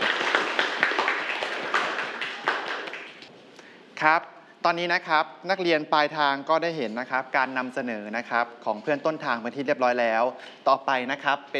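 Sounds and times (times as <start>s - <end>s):
classroom applause for a student: 0.0s - 3.3s
speech: 4.0s - 11.5s.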